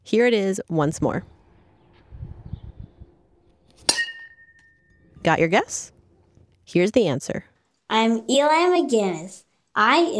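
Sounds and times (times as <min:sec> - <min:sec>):
speech: 0:00.1 - 0:01.4, 0:05.2 - 0:06.0, 0:06.7 - 0:10.1
metal bat hitting a wiffle ball in a yard: 0:03.6 - 0:05.2.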